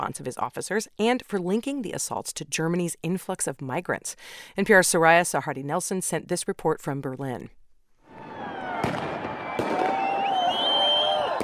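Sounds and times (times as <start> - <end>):
speech: 0.0 - 7.6
New Year's Eve crowd roaring: 8.1 - 11.4
fireworks bangs: 8.1 - 11.4
high whistling rockets: 8.1 - 11.4.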